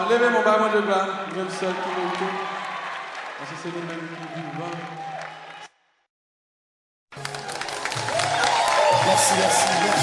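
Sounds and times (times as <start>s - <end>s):
speech: 0.0s - 2.5s, 3.4s - 5.3s, 9.1s - 10.0s
audience applause: 1.2s - 5.7s, 7.1s - 10.0s.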